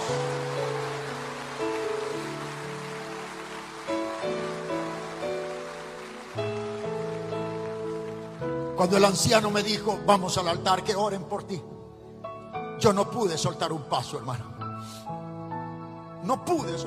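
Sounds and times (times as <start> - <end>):
audience applause: 0.0 - 9.0
sustained keyboard chords: 0.0 - 16.8
speech: 8.8 - 11.7, 12.8 - 15.1, 16.2 - 16.8.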